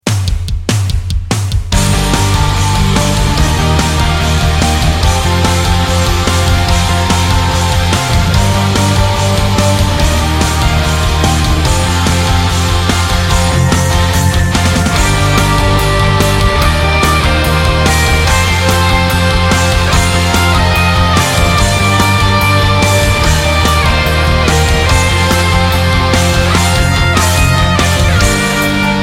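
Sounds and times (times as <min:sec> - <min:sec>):
music beat: 0:00.0 - 0:29.0.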